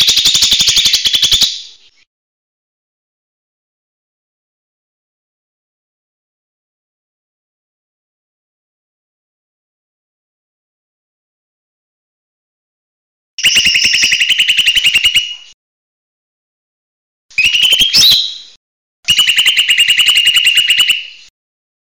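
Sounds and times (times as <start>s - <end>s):
buzzy chattering bird song: 0.0s - 2.1s, 13.4s - 15.6s, 17.4s - 18.5s, 19.1s - 21.3s.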